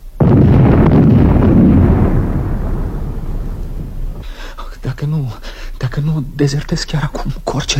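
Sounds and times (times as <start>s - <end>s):
artillery shells exploding: 0.0s - 4.8s
speech: 6.1s - 7.7s.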